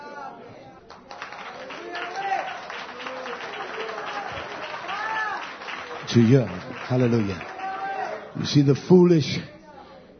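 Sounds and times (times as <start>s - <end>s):
hand clapping: 0.9s - 7.8s
speech: 6.1s - 7.5s, 8.4s - 9.6s.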